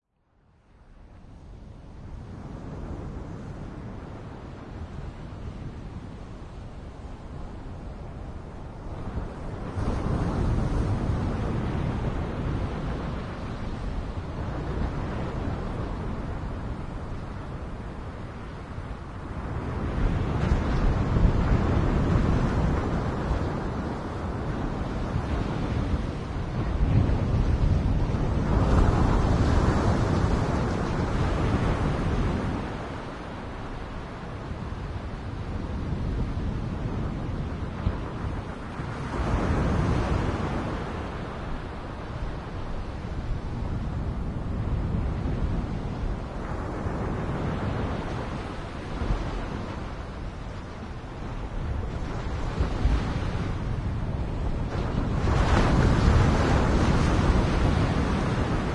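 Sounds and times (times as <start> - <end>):
waves on seashore: 3.6 - 58.7.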